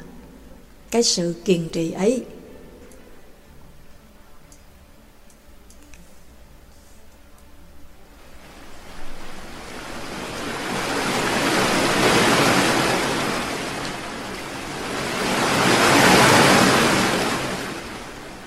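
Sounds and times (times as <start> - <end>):
speech: 0.9 - 2.4
ocean waves crashing: 8.2 - 18.4.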